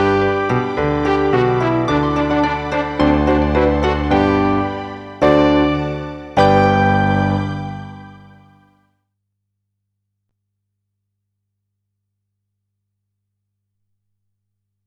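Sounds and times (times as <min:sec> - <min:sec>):
music beat: 0:00.0 - 0:08.1.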